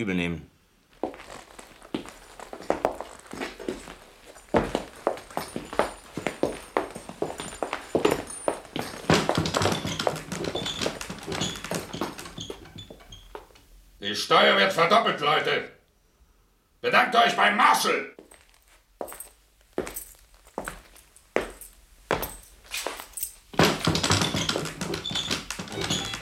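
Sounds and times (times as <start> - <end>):
speech: 0.0 - 0.5, 14.1 - 15.8, 16.8 - 18.2
horse hooves clip-clopping: 1.0 - 13.6, 21.4 - 26.1.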